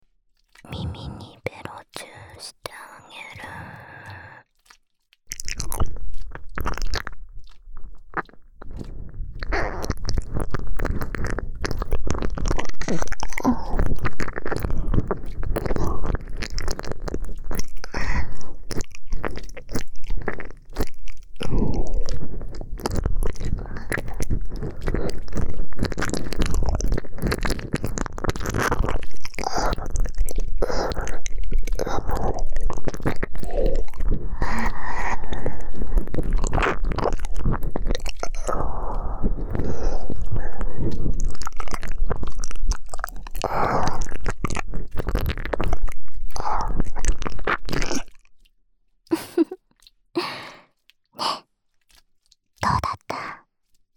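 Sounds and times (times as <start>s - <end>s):
ear licking sounds: 0.4s - 53.9s
whispering: 0.6s - 4.5s, 52.6s - 53.4s.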